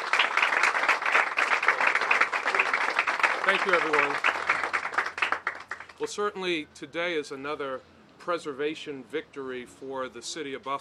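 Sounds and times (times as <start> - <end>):
audience applause: 0.0 - 6.0
speech: 3.4 - 4.4, 6.0 - 10.7.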